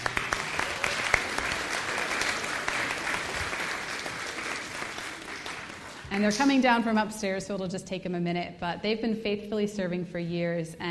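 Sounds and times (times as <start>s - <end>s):
audience applauding: 0.0s - 6.2s
speech: 6.2s - 10.8s.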